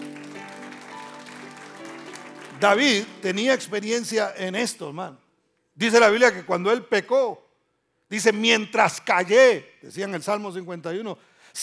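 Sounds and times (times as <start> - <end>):
loud audience applause: 0.0 - 3.2
speech: 2.6 - 5.2, 5.8 - 7.4, 8.1 - 11.6.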